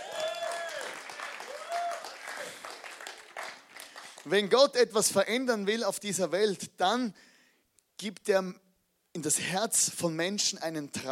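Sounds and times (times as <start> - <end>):
audience applause: 0.0 - 4.3
speech: 4.2 - 7.3, 8.0 - 8.6, 9.2 - 11.1.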